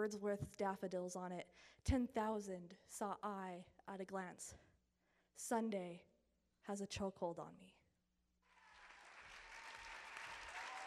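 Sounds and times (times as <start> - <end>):
speech: 0.0 - 4.7, 5.4 - 7.8
audience applause: 8.5 - 10.8.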